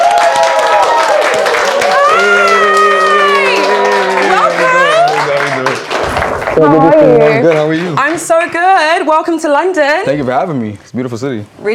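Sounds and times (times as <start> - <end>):
audience applause: 0.0 - 8.2
speech: 6.6 - 11.7.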